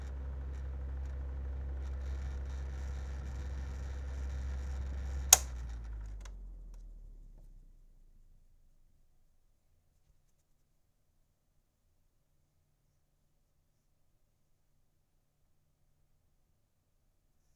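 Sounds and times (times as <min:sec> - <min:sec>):
electric fan: 0:00.0 - 0:06.4.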